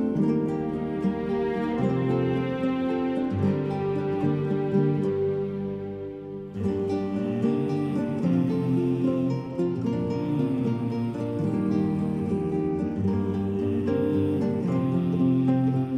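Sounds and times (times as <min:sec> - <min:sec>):
orchestral music: 0:00.1 - 0:15.9.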